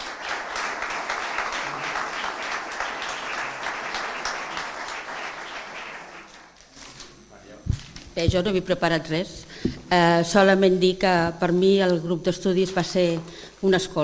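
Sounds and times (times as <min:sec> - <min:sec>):
audience applause: 0:00.0 - 0:06.6
speech: 0:08.2 - 0:14.0.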